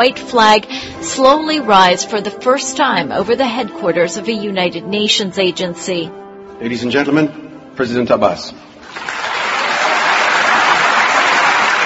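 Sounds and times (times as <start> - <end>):
speech: 0.0 - 9.1
thunderous applause by foreign dignitaries and journalists: 8.8 - 11.8.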